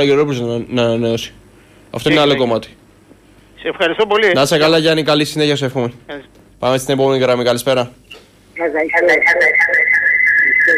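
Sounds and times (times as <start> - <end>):
speech: 0.0 - 2.8, 3.6 - 9.9
radio playing in caller's background: 3.6 - 4.5, 8.6 - 10.7.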